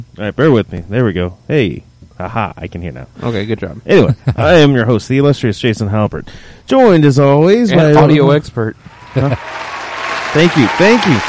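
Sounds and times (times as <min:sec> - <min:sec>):
speech: 0:00.0 - 0:09.6, 0:10.3 - 0:11.2
whooping cheers: 0:08.8 - 0:11.2
studio crowd applauding: 0:08.9 - 0:11.2.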